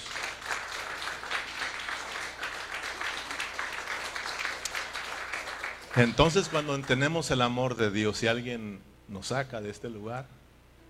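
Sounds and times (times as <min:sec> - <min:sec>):
crowd applauding: 0:00.0 - 0:07.4
speech: 0:06.0 - 0:10.4.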